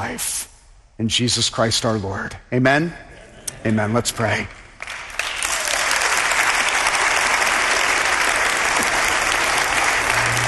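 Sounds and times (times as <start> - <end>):
speech: 0.0 - 4.6
large indoor crowd clapping: 4.7 - 10.4.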